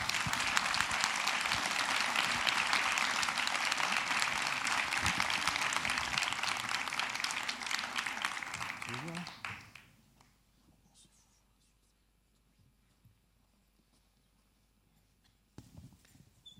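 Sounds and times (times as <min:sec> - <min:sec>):
audience applause: 0:00.0 - 0:09.9.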